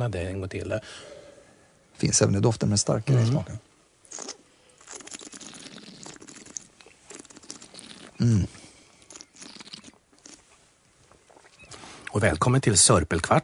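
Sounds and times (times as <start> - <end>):
speech: 0.0 - 1.2, 2.0 - 4.4, 8.2 - 8.6, 12.2 - 13.4
person chewing Bassett's liquorice allsorts: 4.1 - 10.5.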